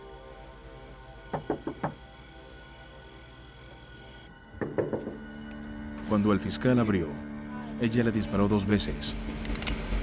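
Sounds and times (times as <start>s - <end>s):
knocking on a door: 1.3s - 2.0s, 4.6s - 5.3s
speech: 6.1s - 9.4s.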